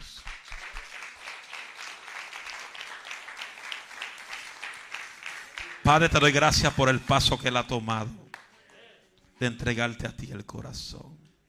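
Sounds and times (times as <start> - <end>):
audience applause: 0.0 - 6.4
speech: 5.9 - 8.2, 9.4 - 11.2.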